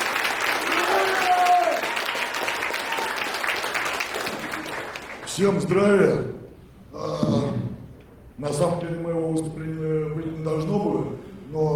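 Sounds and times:
audience applause for volunteer unit fighters at a public event: 0.0 - 5.4
speech: 5.4 - 6.4, 8.4 - 11.7.

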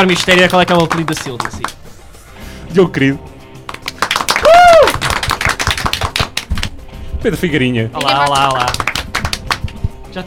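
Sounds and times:
speech: 0.0 - 1.8, 2.7 - 3.3, 7.2 - 8.8
applause of many hands clapping: 0.1 - 1.8, 3.6 - 6.8, 8.0 - 9.9.

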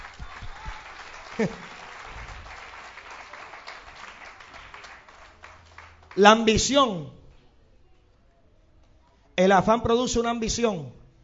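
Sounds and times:
audience applauding: 0.0 - 6.6
speech: 1.4 - 1.8, 6.2 - 7.2, 9.4 - 11.0.

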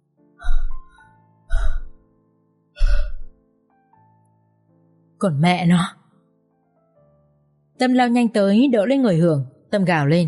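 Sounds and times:
wounded person gasping breaths, tiger fang below the collarbone: 1.5 - 2.0, 2.8 - 3.3
speech: 5.2 - 6.0, 7.8 - 10.2.

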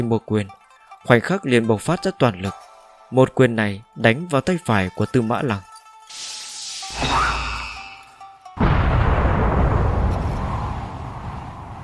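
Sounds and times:
speech: 0.0 - 6.2
loud explosion blast: 8.6 - 11.8.

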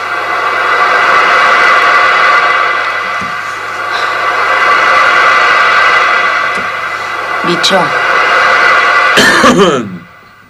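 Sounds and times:
steady humming background: 0.0 - 10.4
speech: 7.5 - 8.0, 9.2 - 10.0
harsh raspy coughing: 9.2 - 9.8.

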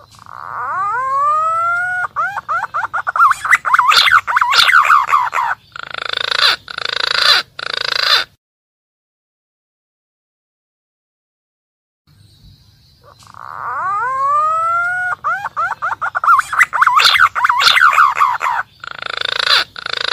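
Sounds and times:
green pigeon calling: 0.0 - 8.4, 13.0 - 20.1.

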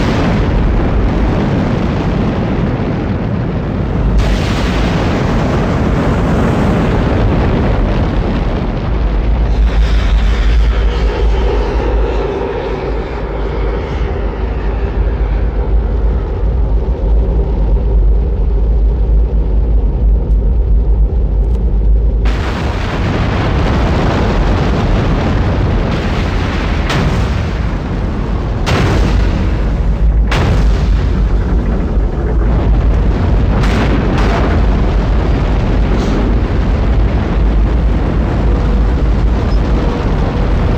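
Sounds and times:
explosions of falling materials: 0.0 - 12.0, 22.1 - 40.7
Apollo 11 rocket launch roar: 0.0 - 40.7.

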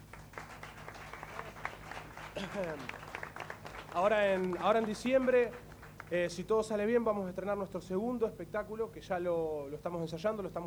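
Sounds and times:
crowd applauding: 0.0 - 6.2
speech: 2.4 - 3.0, 3.9 - 10.6.

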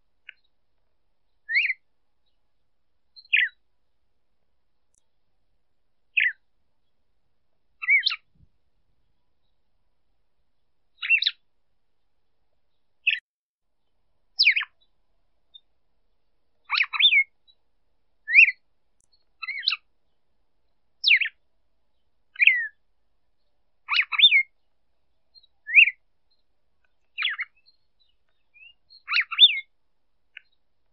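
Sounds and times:
female red-cowled cardinal calling: 1.4 - 2.4, 3.2 - 3.6, 6.2 - 6.4, 7.8 - 8.3, 11.0 - 11.4, 13.0 - 13.2, 14.4 - 14.8, 16.6 - 17.3, 18.3 - 19.9, 21.0 - 21.4, 22.4 - 22.8, 23.4 - 24.6, 25.3 - 29.7.

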